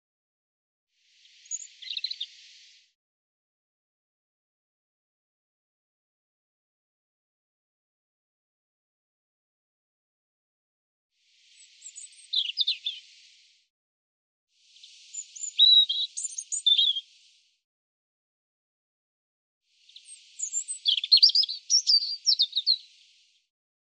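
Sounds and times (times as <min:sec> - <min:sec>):
European robin singing: 0:01.4 - 0:02.5, 0:11.7 - 0:13.2, 0:14.9 - 0:17.3, 0:19.9 - 0:23.2.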